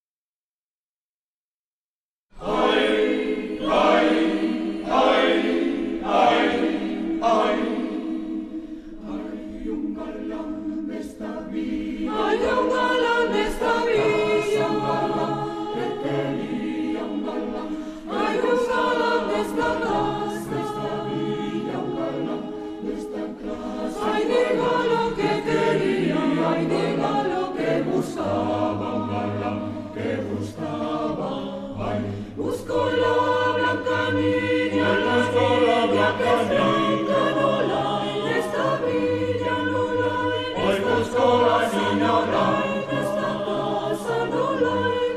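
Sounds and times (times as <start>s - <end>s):
mixed choir singing: 2.4s - 45.1s.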